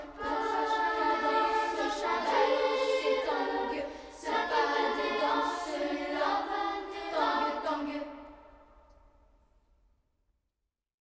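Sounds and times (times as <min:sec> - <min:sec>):
a cappella singing: 0:00.0 - 0:08.8.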